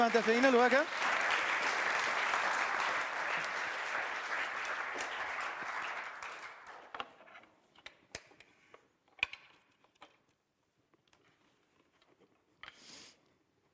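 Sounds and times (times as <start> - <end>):
audience applause: 0.0 - 7.0.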